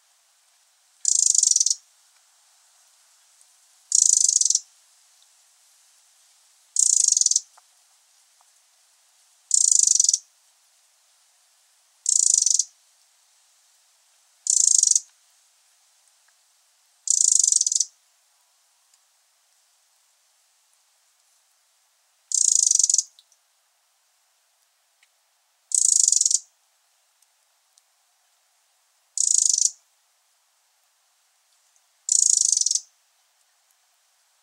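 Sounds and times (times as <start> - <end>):
Eurasian wren rattling call: 1.0 - 1.8, 3.9 - 4.7, 6.8 - 7.6, 9.5 - 10.3, 12.0 - 12.7, 14.4 - 15.1, 17.0 - 18.0, 22.3 - 23.2, 25.7 - 26.5, 29.2 - 29.8, 32.1 - 32.9.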